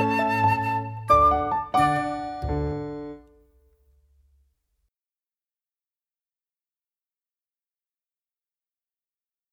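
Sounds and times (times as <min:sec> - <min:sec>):
orchestral piece: 0:00.0 - 0:03.2.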